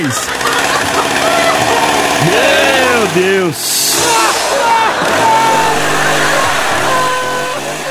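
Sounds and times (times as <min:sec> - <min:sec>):
speech: 0:00.0 - 0:00.5, 0:02.2 - 0:06.0
child imitating a chainsaw: 0:00.0 - 0:07.8
laughter: 0:00.0 - 0:07.8
loud hissing burst: 0:02.8 - 0:07.8.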